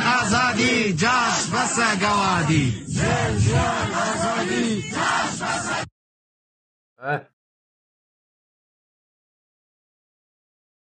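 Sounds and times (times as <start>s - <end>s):
protest crowd chanting slogans: 0.0s - 5.9s
speech: 0.6s - 5.9s, 7.0s - 7.3s.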